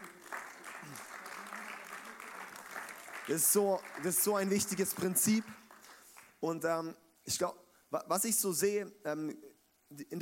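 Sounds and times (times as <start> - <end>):
crowd applause: 0.0 - 6.4
speech: 3.3 - 5.6, 6.4 - 10.2.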